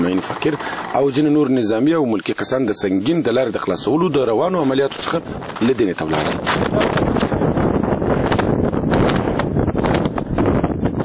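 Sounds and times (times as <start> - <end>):
wind blowing across a dusty desert in Helmand, Afghanistan: 0.0 - 11.0
speech: 0.2 - 7.4.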